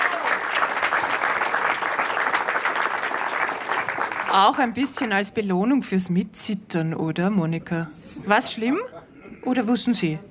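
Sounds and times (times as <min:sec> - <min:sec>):
audience applause: 0:00.0 - 0:05.1
speech: 0:04.4 - 0:10.2.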